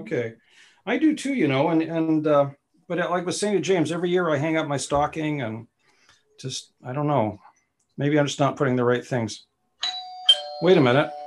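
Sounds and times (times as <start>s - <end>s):
speech: 0.0s - 5.7s, 6.4s - 9.5s, 10.6s - 11.2s
doorbell chiming: 9.8s - 11.2s.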